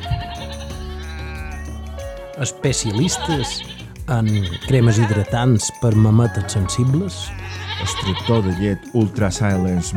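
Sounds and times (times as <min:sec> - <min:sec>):
goat bleating: 0:00.0 - 0:05.3, 0:07.2 - 0:08.6
speech: 0:02.4 - 0:09.9.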